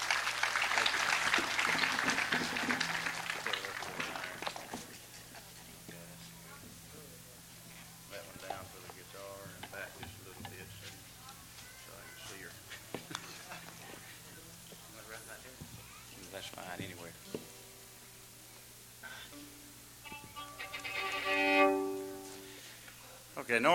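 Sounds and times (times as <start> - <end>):
crowd applause: 0.0 - 5.2
murmuring voices: 0.0 - 17.3
low steady hum: 0.1 - 23.7.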